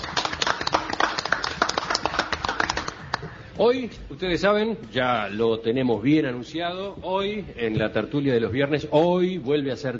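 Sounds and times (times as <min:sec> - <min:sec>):
audience applause: 0:00.0 - 0:03.4
speech: 0:03.6 - 0:09.9.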